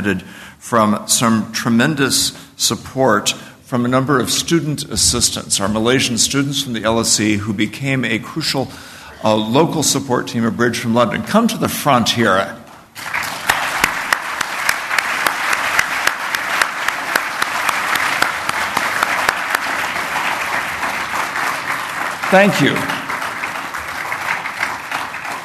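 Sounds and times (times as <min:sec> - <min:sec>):
speech: 0:00.0 - 0:13.2, 0:22.3 - 0:23.0
audience applause: 0:13.0 - 0:25.4.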